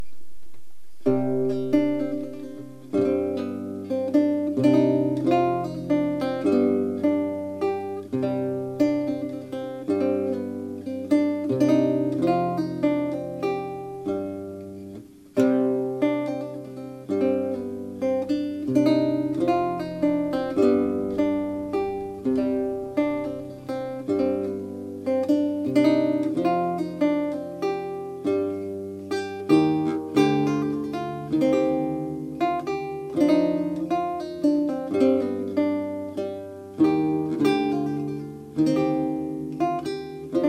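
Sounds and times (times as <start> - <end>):
minuet: 0.0 - 40.4.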